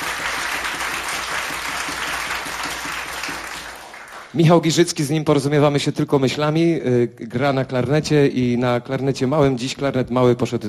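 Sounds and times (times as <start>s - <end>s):
audience applause: 0.0s - 4.4s
speech: 4.4s - 10.6s.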